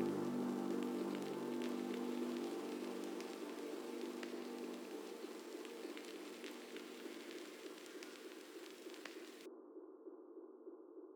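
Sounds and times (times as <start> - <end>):
drone in E-flat: 0.0 - 7.5.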